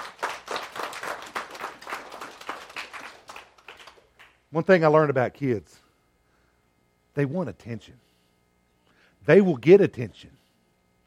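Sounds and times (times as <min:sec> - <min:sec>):
crowd applauding: 0:00.0 - 0:04.4
speech: 0:04.5 - 0:05.8, 0:07.2 - 0:08.1, 0:09.2 - 0:10.4.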